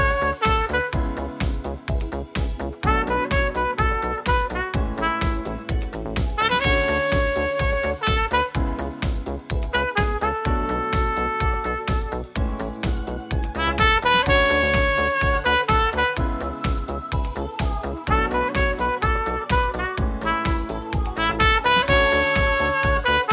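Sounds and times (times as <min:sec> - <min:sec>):
brass instruments: 0:00.0 - 0:12.8, 0:13.5 - 0:16.8, 0:18.1 - 0:23.3
disco music: 0:00.0 - 0:23.3.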